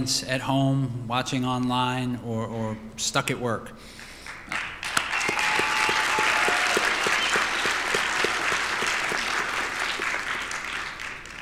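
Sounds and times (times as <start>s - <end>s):
speech: 0.0s - 4.6s
audience applause at commencement ceremony: 4.3s - 11.4s.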